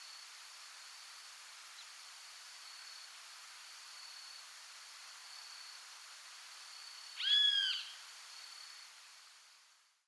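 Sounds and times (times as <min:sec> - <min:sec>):
great kiskadee giving harsh squawking calls: 0:07.2 - 0:07.9.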